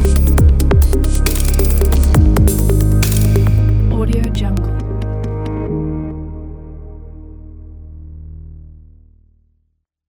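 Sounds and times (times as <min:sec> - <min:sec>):
background technology music: 0:00.0 - 0:07.1.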